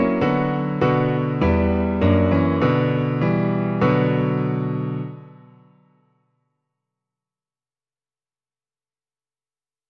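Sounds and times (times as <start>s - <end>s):
piano: 0.0s - 6.2s.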